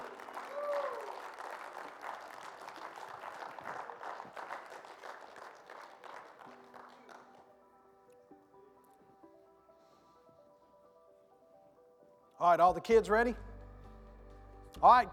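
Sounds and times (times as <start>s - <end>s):
audience applause: 0.0s - 7.5s
speech: 12.4s - 13.5s, 14.8s - 15.1s.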